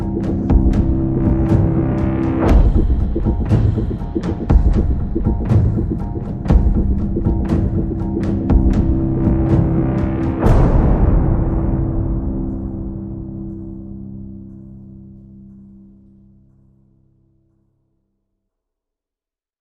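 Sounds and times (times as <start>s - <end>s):
electronic pulses: 0.0s - 15.5s
percussion: 0.0s - 15.6s.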